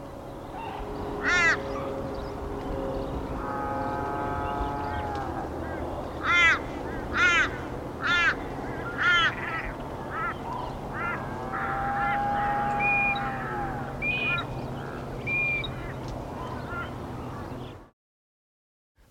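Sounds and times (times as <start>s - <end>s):
sarus crane calling: 0.0s - 17.9s.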